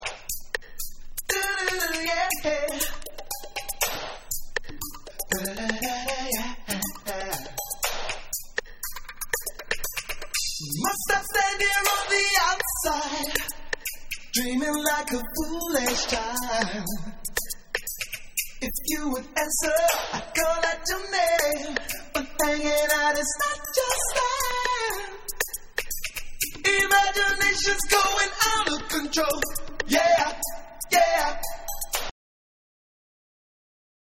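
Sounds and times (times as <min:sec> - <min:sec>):
a cappella beats: 0:00.0 - 0:32.1.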